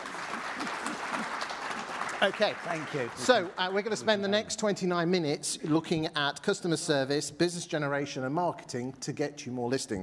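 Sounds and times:
audience applause: 0.0s - 4.0s
speech: 2.2s - 10.0s.

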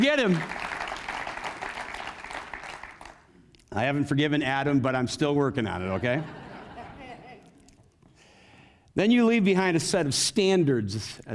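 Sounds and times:
speech: 0.0s - 0.6s, 3.7s - 6.4s, 9.0s - 11.3s
audience applause: 0.0s - 3.3s
laughter: 5.9s - 7.8s.

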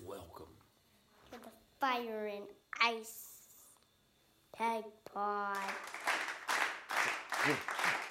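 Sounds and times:
speech: 1.8s - 3.3s, 4.6s - 6.0s, 7.5s - 7.7s
crowd applause: 5.6s - 8.0s.

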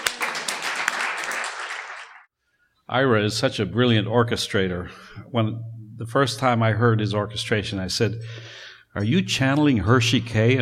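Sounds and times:
applause: 0.0s - 2.3s
speech: 2.9s - 10.6s.

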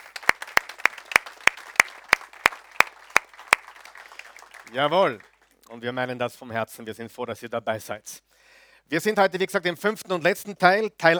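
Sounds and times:
audience applause: 0.0s - 5.6s
speech: 4.7s - 11.1s.

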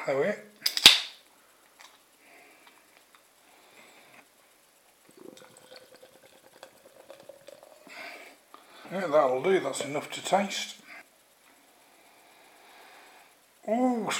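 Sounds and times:
speech: 0.0s - 0.5s, 8.9s - 10.8s, 13.7s - 14.1s
beer poured from 330ml can into glass: 5.0s - 8.5s.

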